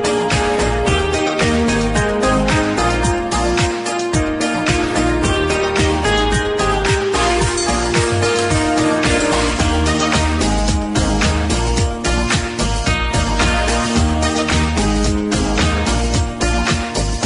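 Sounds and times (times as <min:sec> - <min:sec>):
forest party background music: 0:00.0 - 0:17.2.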